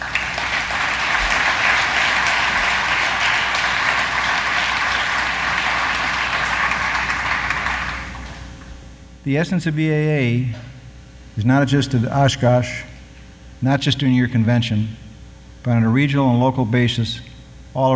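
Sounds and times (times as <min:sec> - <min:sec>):
crowd applause: 0:00.0 - 0:08.4
speech: 0:09.2 - 0:10.7, 0:11.4 - 0:12.9, 0:13.6 - 0:15.0, 0:15.6 - 0:17.9.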